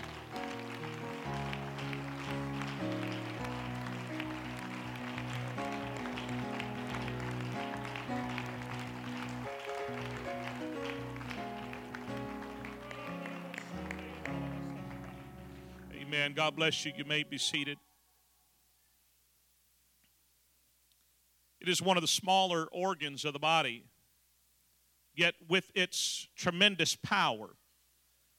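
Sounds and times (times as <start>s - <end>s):
audience clapping hands in praise: 0.0s - 16.4s
speech: 16.1s - 17.8s, 21.7s - 23.9s, 25.2s - 27.6s.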